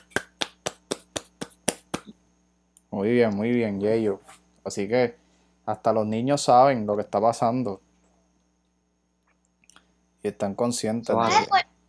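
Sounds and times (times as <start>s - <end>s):
clapping: 0.0s - 2.1s
speech: 2.9s - 7.8s, 10.2s - 11.6s.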